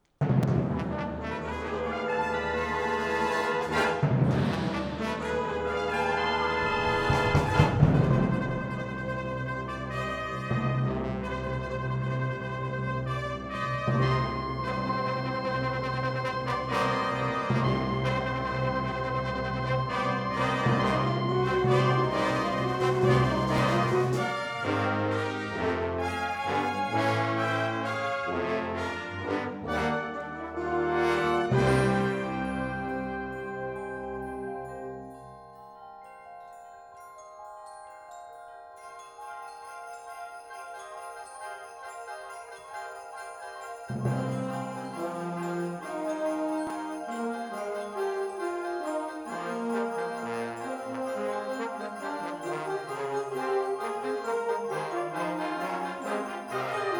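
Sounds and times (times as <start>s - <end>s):
wind symphony fanfare: 0.2s - 35.0s, 40.1s - 56.9s.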